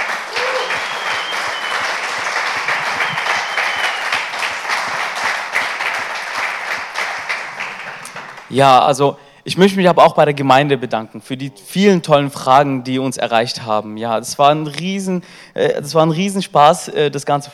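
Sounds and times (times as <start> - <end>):
audience applause: 0.0 - 8.5
speech: 8.5 - 17.5.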